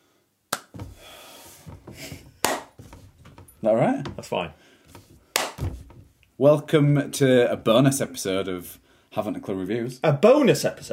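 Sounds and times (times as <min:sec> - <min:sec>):
hand claps for editing sync: 0:00.5 - 0:00.8, 0:02.4 - 0:02.8, 0:05.3 - 0:05.6
rustling and handling noise: 0:00.7 - 0:06.3
speech: 0:03.6 - 0:04.6, 0:06.4 - 0:10.9.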